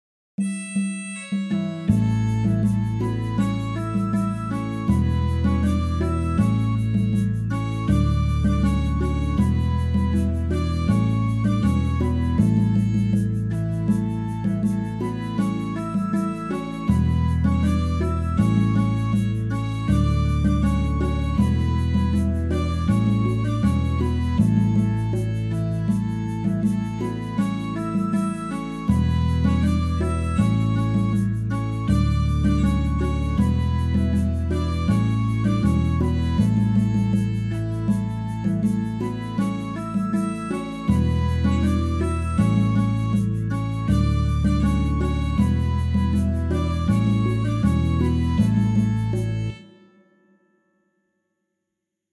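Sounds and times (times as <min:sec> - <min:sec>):
instrumental music: 0:00.4 - 0:50.7.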